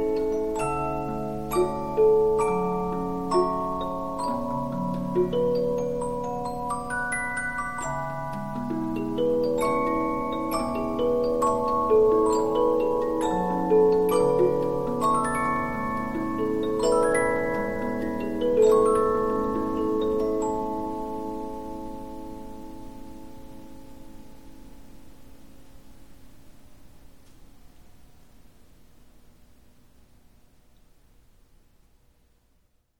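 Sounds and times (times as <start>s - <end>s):
Polyphon 15-inch disc music box playing: 0.0s - 24.2s.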